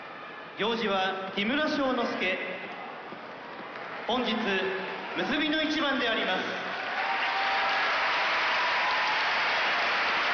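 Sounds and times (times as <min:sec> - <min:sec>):
speech: 0:00.6 - 0:02.7, 0:04.1 - 0:06.7
arena applause and cheering: 0:03.4 - 0:10.3.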